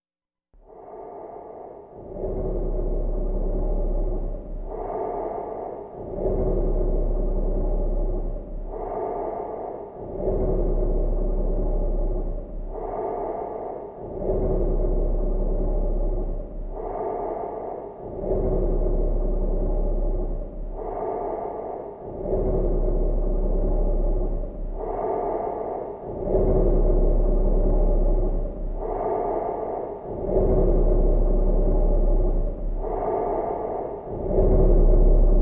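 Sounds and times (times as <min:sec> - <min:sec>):
human bassy exhale through reverb: 0:00.6 - 0:35.4.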